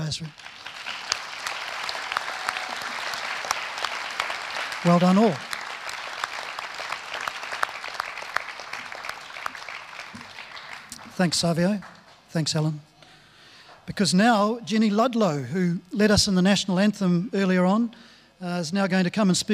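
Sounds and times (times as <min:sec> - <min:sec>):
audience applause: 0:00.0 - 0:12.2
speech: 0:00.1 - 0:00.5, 0:04.8 - 0:05.5, 0:11.2 - 0:12.9, 0:13.9 - 0:19.5.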